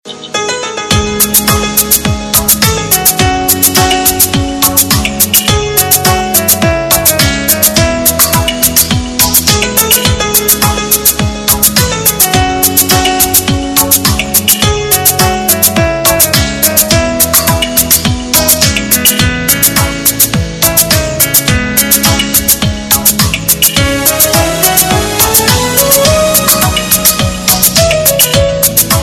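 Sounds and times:
instrumental mix: 0.0s - 29.0s.

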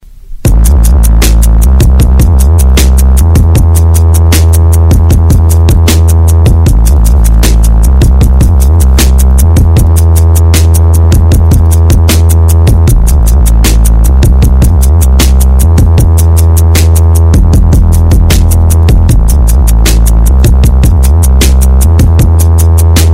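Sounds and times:
booming bass: 0.3s - 23.1s.

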